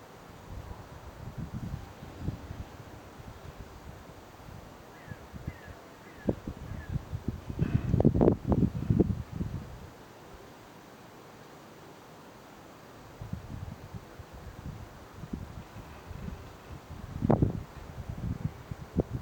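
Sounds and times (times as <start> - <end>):
outdoor ambience: 0.0 - 19.1.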